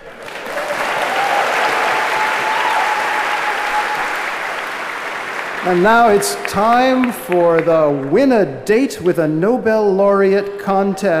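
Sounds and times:
audience applause: 0:00.0 - 0:08.1
speech: 0:05.6 - 0:11.1.

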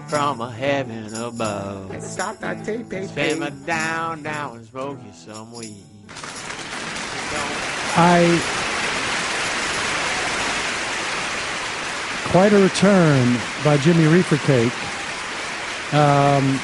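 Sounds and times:
speech: 0:00.1 - 0:06.3, 0:07.3 - 0:08.7, 0:12.3 - 0:14.9, 0:15.9 - 0:16.6
audience applause: 0:06.1 - 0:16.6.

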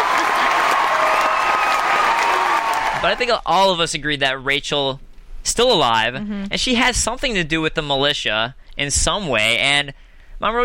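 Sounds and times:
round of applause: 0:00.0 - 0:03.3
speech: 0:03.0 - 0:10.6.

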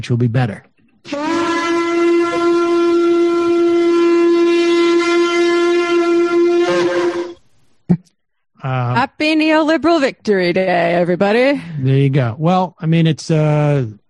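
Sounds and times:
speech: 0:00.0 - 0:01.2, 0:08.6 - 0:14.0
shofar blast: 0:01.0 - 0:07.4.

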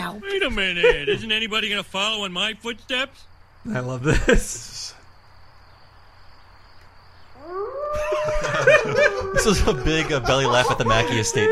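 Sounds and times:
speech: 0:00.1 - 0:05.0, 0:07.4 - 0:11.5
laughter: 0:00.3 - 0:01.5, 0:04.0 - 0:04.7, 0:07.9 - 0:11.5
drawn-out wavering howl: 0:07.4 - 0:11.5.

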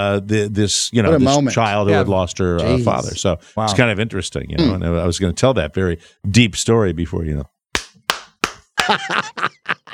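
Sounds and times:
speech: 0:00.0 - 0:07.6, 0:08.9 - 0:09.8
short voiced reactions: 0:04.6 - 0:04.9
hand claps: 0:07.7 - 0:09.1
laughter: 0:08.8 - 0:09.9.

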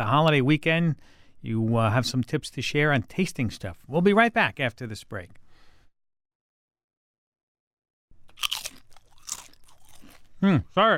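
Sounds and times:
speech: 0:00.0 - 0:05.4, 0:10.4 - 0:10.9
crunching and chewing of a potato chip: 0:08.3 - 0:10.3.

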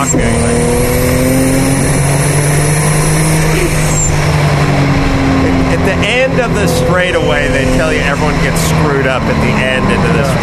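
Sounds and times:
turbocharged race car engine driven around a racetrack: 0:00.0 - 0:10.4
speech: 0:08.2 - 0:10.2.

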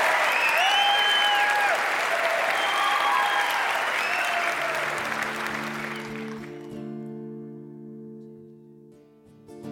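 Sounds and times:
audience applause welcoming a band in the Brown Theater in Louisville, Kentucky: 0:00.0 - 0:06.9.

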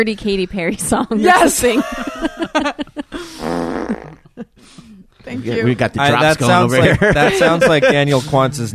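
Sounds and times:
speech: 0:00.0 - 0:08.7
laughter: 0:01.3 - 0:03.3, 0:05.3 - 0:08.7
fart sound effect: 0:03.4 - 0:04.3.

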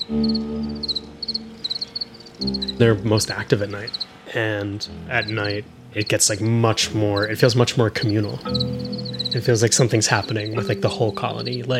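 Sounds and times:
low droning hum: 0:00.0 - 0:07.3
cricket post-mating chirp: 0:00.0 - 0:11.7
speech: 0:02.8 - 0:11.7.

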